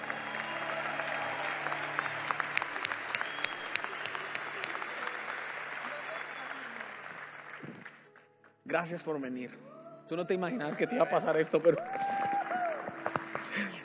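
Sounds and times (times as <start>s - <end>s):
audience applause: 0.0s - 8.1s, 11.1s - 13.8s
speech: 8.7s - 12.0s.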